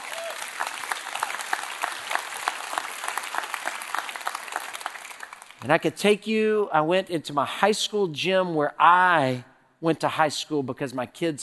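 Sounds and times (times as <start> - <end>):
audience cheering: 0.0 - 5.2
speech: 5.6 - 11.4.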